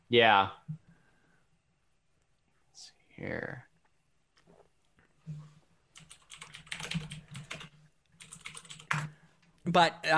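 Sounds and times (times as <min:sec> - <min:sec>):
speech: 0:00.1 - 0:00.8, 0:02.8 - 0:03.7, 0:09.6 - 0:10.1
soft typing on a computer keyboard entering a web search: 0:06.0 - 0:09.2.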